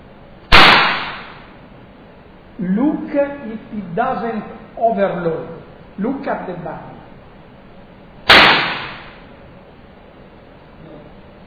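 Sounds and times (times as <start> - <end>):
clapping machine bang: 0.5 - 1.5, 8.3 - 9.2
speech: 2.6 - 6.9.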